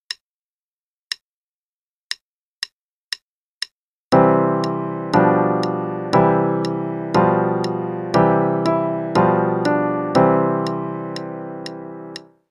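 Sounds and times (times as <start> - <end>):
blocked chords harmonizing: 4.1 - 12.3.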